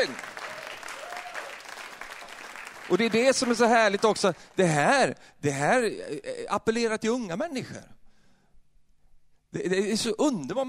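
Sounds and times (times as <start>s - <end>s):
audience applause: 0.0s - 4.3s
speech: 2.9s - 8.0s, 9.5s - 10.6s.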